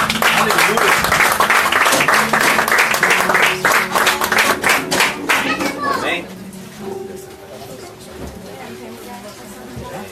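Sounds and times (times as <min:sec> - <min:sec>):
crowd clapping: 0:00.0 - 0:05.9.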